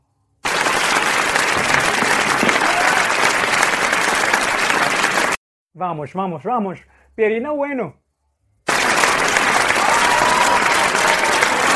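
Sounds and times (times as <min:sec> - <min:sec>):
audience applause: 0:00.4 - 0:05.4, 0:08.7 - 0:11.7
speech: 0:05.8 - 0:08.0.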